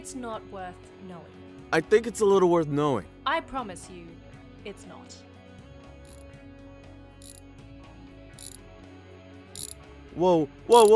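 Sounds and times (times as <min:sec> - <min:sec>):
speech: 0:00.0 - 0:05.3, 0:10.2 - 0:10.9
ratcheting mechanism while adjusting a door: 0:09.6 - 0:09.8, 0:10.7 - 0:10.9.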